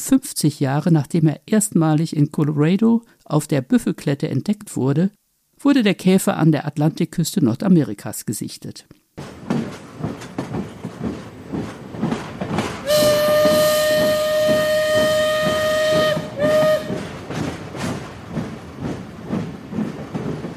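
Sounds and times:
speech: 0.0s - 9.6s
steam train chugging and rattling: 9.2s - 20.5s
steam train whistle blowing: 12.8s - 17.1s.

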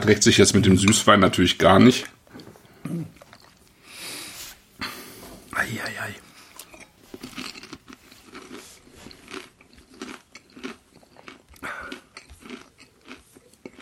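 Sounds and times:
speech: 0.0s - 2.2s
crunching on a dry snack: 2.8s - 3.8s, 6.5s - 13.8s.

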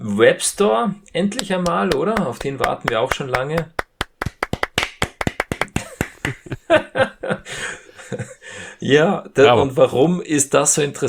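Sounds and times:
speech: 0.0s - 3.8s, 6.3s - 11.0s
applause: 1.4s - 6.5s.

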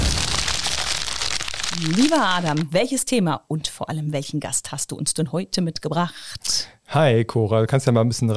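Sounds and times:
paper goodie bag rustling: 0.0s - 2.7s
speech: 1.8s - 8.3s.

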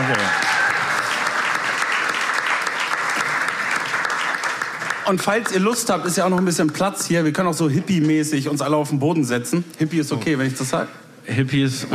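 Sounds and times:
audience applause: 0.0s - 7.3s
speech: 5.1s - 11.9s.

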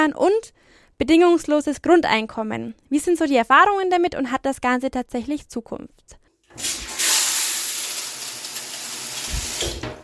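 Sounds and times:
speech: 0.0s - 6.8s
shower running: 6.5s - 10.0s.

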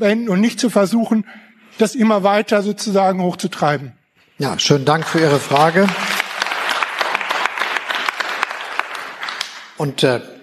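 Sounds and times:
speech: 0.0s - 6.1s, 9.8s - 10.4s
applause: 4.8s - 9.9s.

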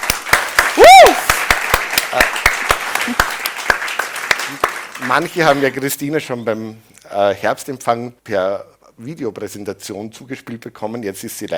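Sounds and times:
audience applause: 0.0s - 5.8s
speech: 5.1s - 11.5s.

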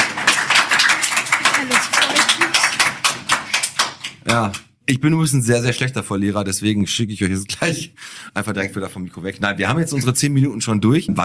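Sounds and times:
applause: 0.0s - 4.6s
speech: 4.3s - 11.2s.

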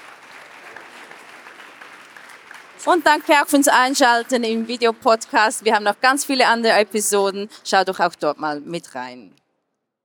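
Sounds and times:
audience applause closing a talk session: 0.0s - 7.4s
speech: 2.8s - 9.4s.

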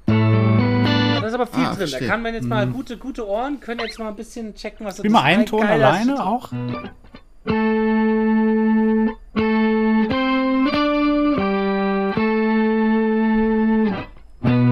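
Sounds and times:
guitar through pitch-shifter and tremolo effects: 0.0s - 1.4s, 5.7s - 14.7s
speech: 1.4s - 7.7s.

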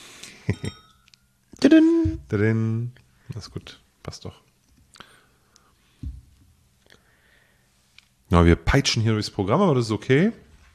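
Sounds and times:
glass clinking as a drink is poured: 0.4s - 1.4s
speech: 1.8s - 4.5s, 8.3s - 10.4s.

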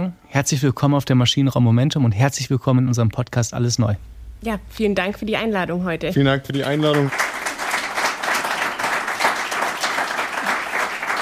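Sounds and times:
speech: 0.1s - 7.2s
audience applause at live recording: 6.5s - 11.2s.

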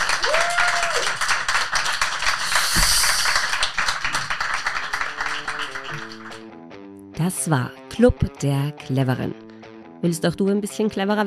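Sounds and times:
audience applause: 0.0s - 6.4s
speech: 7.2s - 9.4s, 10.0s - 11.2s.

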